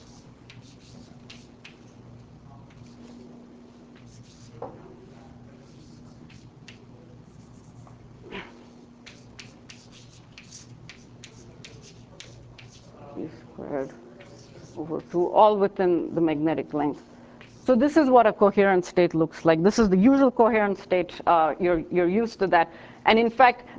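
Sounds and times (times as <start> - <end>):
writing on a board in a lecture: 0.0 - 1.9, 2.6 - 8.0, 8.6 - 13.0, 13.8 - 15.3, 17.4 - 17.8
speech: 14.8 - 23.7.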